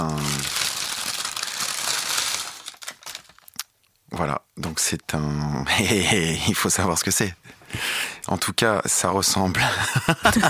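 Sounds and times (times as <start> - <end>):
small paper bakery bag being opened: 0.0 - 3.6
speech: 4.2 - 10.4
laughter: 9.6 - 10.4.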